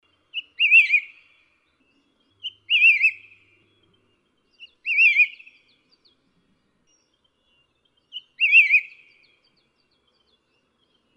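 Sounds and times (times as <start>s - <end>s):
white-whiskered laughingthrush calling: 0.3s - 1.6s, 2.4s - 5.8s, 8.1s - 9.4s.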